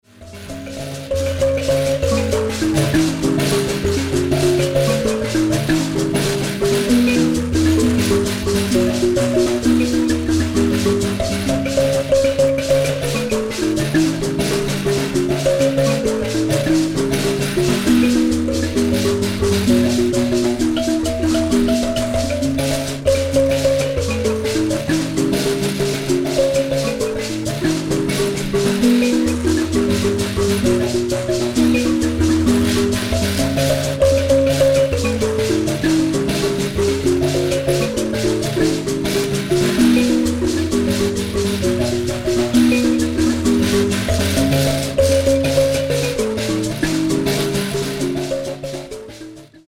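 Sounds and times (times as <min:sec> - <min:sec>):
mbira: 0:00.0 - 0:49.6.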